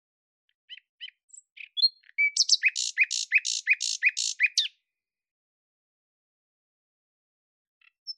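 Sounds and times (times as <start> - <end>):
bird singing rattling high notes: 2.4 - 4.6.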